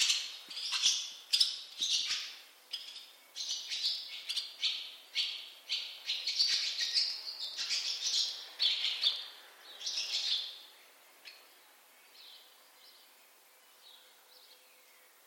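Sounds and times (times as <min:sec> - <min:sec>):
barn swallow twittering calls: 0:00.0 - 0:10.6.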